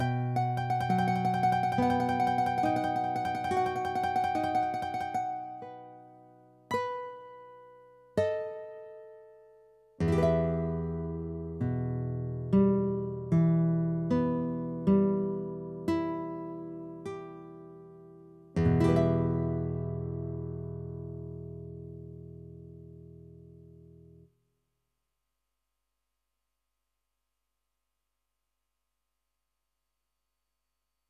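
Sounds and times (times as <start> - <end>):
guitar: 0.0 - 24.3.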